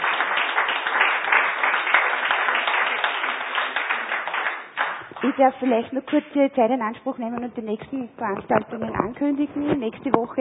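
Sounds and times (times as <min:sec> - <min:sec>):
audience applause: 0:00.0 - 0:05.8
speech: 0:05.3 - 0:10.3.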